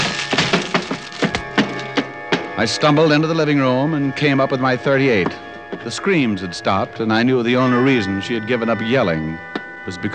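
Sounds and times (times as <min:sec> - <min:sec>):
heavy wooden door cracking and splintering as it is forced off its hinges: 0:00.0 - 0:01.8
speech: 0:02.6 - 0:10.1.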